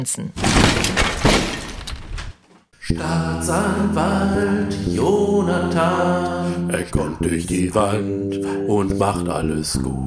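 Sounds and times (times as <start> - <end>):
speech: 0.0 - 1.5, 2.9 - 10.0
office door being broken open: 0.4 - 2.6.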